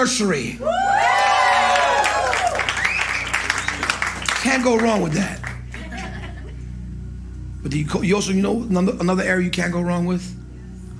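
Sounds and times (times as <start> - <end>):
speech: 0.0 - 1.1, 4.4 - 5.4, 7.6 - 10.4
crowd yelling and cheering: 0.6 - 5.2
laughter: 5.4 - 6.7.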